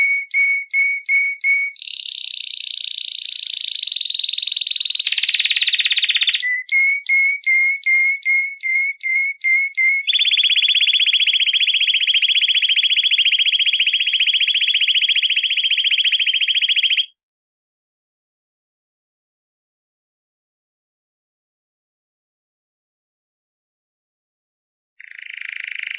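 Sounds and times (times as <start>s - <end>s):
canary giving rattling trill and high pulsed roll: 0.0s - 17.1s.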